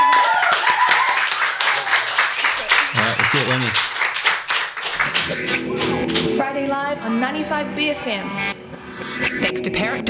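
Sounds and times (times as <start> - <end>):
laughter: 0.0 - 8.6
audience applause in a lounge: 0.0 - 8.7
speech: 7.3 - 8.6, 9.6 - 10.0.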